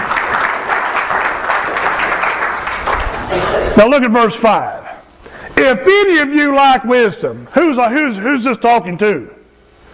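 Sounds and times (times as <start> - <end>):
audience applause: 0.0 - 3.3
speech: 3.8 - 4.8, 5.6 - 9.4.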